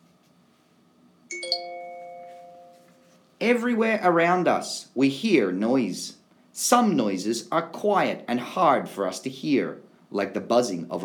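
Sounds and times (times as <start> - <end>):
page-turn signal chime: 1.3 - 3.2
speech: 3.4 - 11.0.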